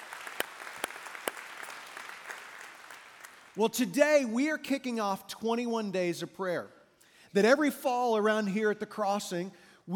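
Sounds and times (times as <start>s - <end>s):
church congregation applauding: 0.0s - 3.8s
speech: 3.6s - 9.9s.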